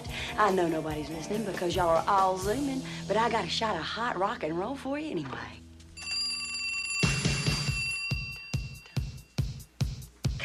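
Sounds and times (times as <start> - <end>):
speech: 0.4 - 5.6
telephone bell ringing: 6.0 - 9.4.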